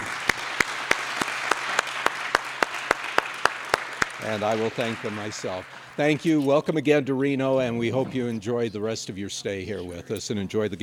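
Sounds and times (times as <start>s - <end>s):
audience applause for panelists: 0.0s - 6.4s
speech: 4.2s - 10.8s.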